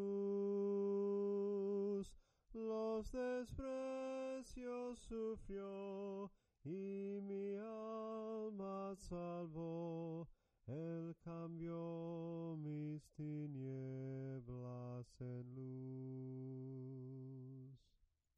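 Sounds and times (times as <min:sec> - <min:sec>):
soprano singing hymns in soprano melody: 0:00.0 - 0:17.5.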